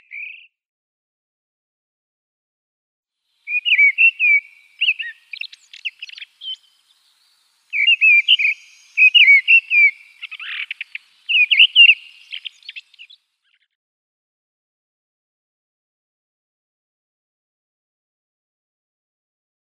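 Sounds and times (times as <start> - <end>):
mistle thrush song of clear fluting phrases: 3.5 - 13.2.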